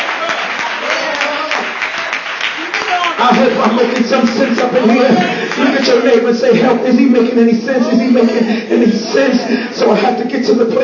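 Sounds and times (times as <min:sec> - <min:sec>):
audience clapping hands: 0:00.0 - 0:06.4
laughter: 0:03.2 - 0:10.6
speech: 0:03.6 - 0:10.8.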